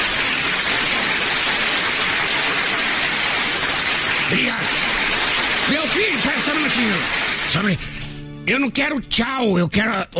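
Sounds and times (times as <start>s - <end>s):
applause: 0.0s - 8.0s
speech: 4.3s - 4.8s, 5.7s - 7.9s, 8.5s - 10.1s.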